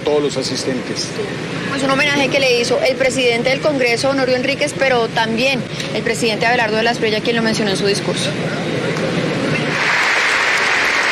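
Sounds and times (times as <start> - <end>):
speech: 0.1 - 8.8
audience applause and ovation at presidential inauguration in USC Arena Cali: 9.6 - 11.1.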